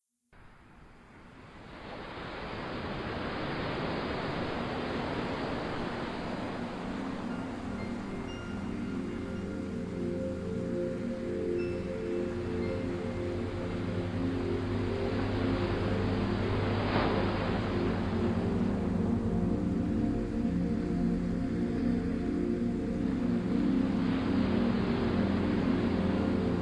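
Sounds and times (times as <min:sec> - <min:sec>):
zen sleep music with delta waves: 0:00.4 - 0:26.5.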